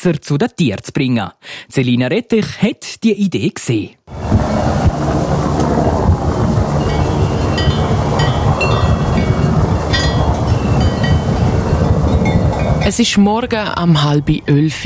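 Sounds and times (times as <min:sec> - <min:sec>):
speech: 0:00.0 - 0:05.2, 0:12.9 - 0:14.8
Swiss Helicopter helicopter on a mountain: 0:04.1 - 0:12.8.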